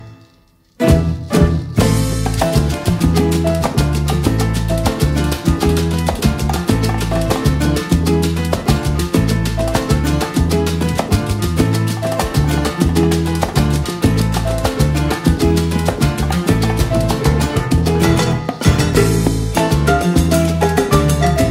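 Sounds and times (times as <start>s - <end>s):
instrumental salsa son music: 0.0s - 21.5s.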